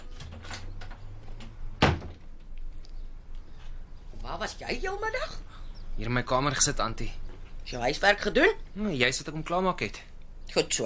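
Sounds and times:
faint hum: 0:00.0 - 0:10.8
door opening as a visitor comes in: 0:01.8 - 0:02.2
speech: 0:04.2 - 0:10.8.

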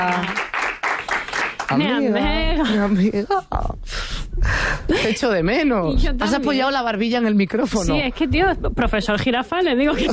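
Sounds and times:
speech: 0:00.0 - 0:00.5, 0:01.7 - 0:10.1
audience applauding to welcome a female guest: 0:00.0 - 0:02.2.

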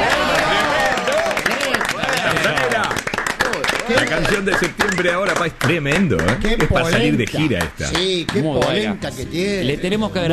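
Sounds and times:
raised voices and cheering: 0:00.0 - 0:02.8
crowd applauding: 0:00.0 - 0:08.9
speech: 0:04.1 - 0:10.3.

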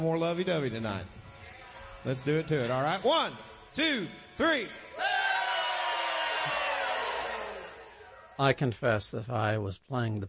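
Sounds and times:
speech: 0:00.0 - 0:01.2, 0:02.0 - 0:05.2, 0:08.4 - 0:10.2
crowd hollering and whooping: 0:04.8 - 0:08.4.

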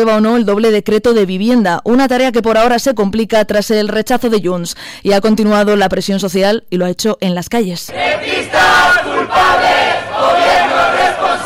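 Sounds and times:
speech: 0:00.0 - 0:10.6
crowd shouting at a mass demonstration in Logroño: 0:07.9 - 0:11.4.

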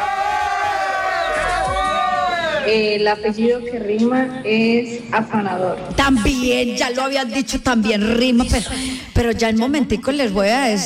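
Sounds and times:
crowd cheering with whoops: 0:00.0 - 0:02.8
speech: 0:02.6 - 0:10.8.

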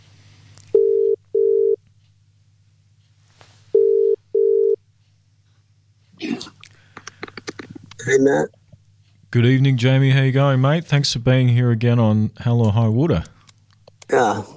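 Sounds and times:
telephone ringback tone: 0:00.8 - 0:01.8, 0:03.8 - 0:04.8
speech: 0:08.1 - 0:08.6, 0:09.3 - 0:13.4, 0:14.2 - 0:14.5.

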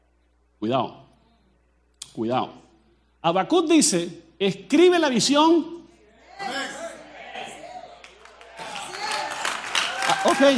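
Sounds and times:
speech: 0:00.6 - 0:01.0, 0:02.2 - 0:02.6, 0:03.2 - 0:05.8, 0:10.2 - 0:10.5
audience applause: 0:07.4 - 0:10.5.

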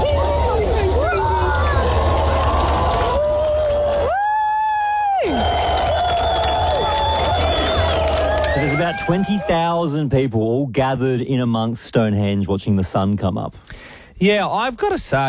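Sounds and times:
crowd clapping and cheering: 0:00.0 - 0:10.0
speech: 0:08.9 - 0:15.2.

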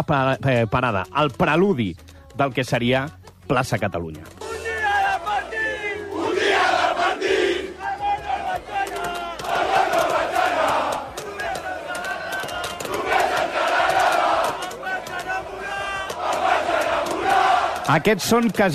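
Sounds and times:
speech: 0:00.0 - 0:04.7, 0:17.9 - 0:18.7
large crowd of football fans cheering and shouting: 0:04.3 - 0:18.7.

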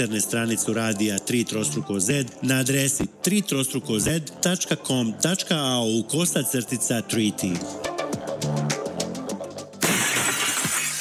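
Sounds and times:
speech: 0:00.0 - 0:08.7
short rhythmic musical passage in an auto glass advert: 0:00.0 - 0:10.9
car windshield glass shattering sound effect in an auto glass advert: 0:09.8 - 0:10.9.

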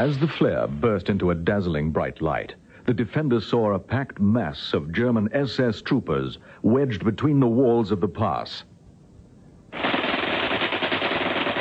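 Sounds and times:
speech: 0:00.0 - 0:08.7
rifle fire: 0:09.8 - 0:11.5.

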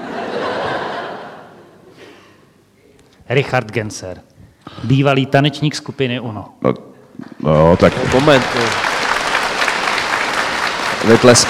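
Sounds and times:
laughter: 0:00.0 - 0:01.9
speech: 0:03.3 - 0:08.9, 0:11.0 - 0:11.4
audience applause: 0:07.5 - 0:11.4.

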